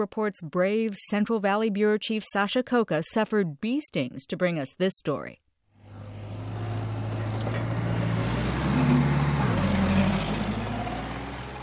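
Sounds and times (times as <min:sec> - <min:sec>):
speech: 0:00.0 - 0:05.4
big rig truck backing into an almond orchard: 0:05.8 - 0:11.6.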